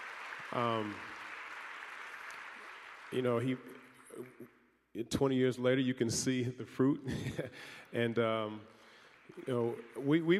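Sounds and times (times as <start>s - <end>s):
crowd cheer: 0.0s - 4.3s, 9.0s - 10.3s
crowd applause: 0.0s - 4.4s, 8.1s - 10.3s
speech: 0.5s - 1.1s, 3.1s - 10.3s.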